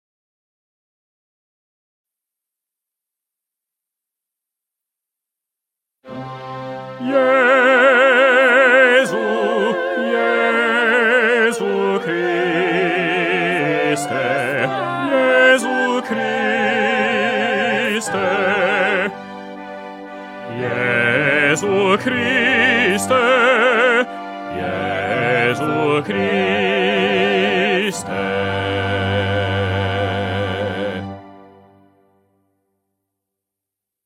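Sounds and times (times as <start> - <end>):
bass voice singing mass: 7.0 - 19.2, 20.4 - 31.4.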